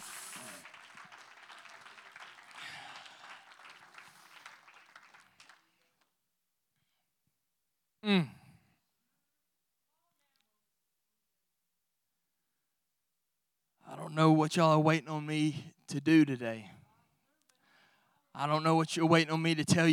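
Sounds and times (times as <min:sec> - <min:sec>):
audience clapping hands: 0:00.0 - 0:06.1
speech: 0:08.0 - 0:08.4, 0:14.2 - 0:16.8, 0:18.4 - 0:19.9.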